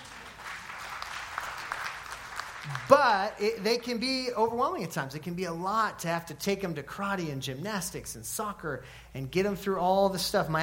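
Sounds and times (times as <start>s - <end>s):
applause: 0.0s - 3.9s
speech: 2.6s - 10.6s.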